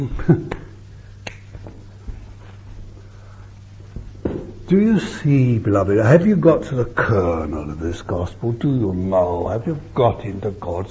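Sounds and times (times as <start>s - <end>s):
speech: 0.0s - 0.6s, 4.7s - 10.8s
speaker clapping hands: 0.5s - 1.8s.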